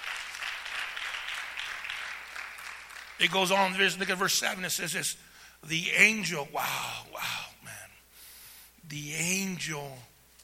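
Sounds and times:
audience clapping: 0:00.0 - 0:04.6
speech: 0:03.2 - 0:07.4, 0:08.9 - 0:10.1.

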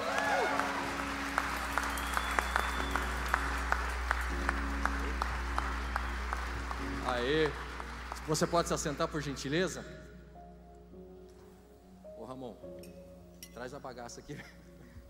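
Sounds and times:
audience applause: 0:00.0 - 0:09.6
speech: 0:08.3 - 0:10.0, 0:14.0 - 0:14.7.

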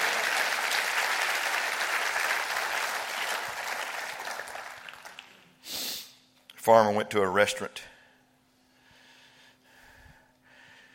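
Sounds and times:
audience clapping hands: 0:00.0 - 0:05.6
speech: 0:06.6 - 0:07.9.

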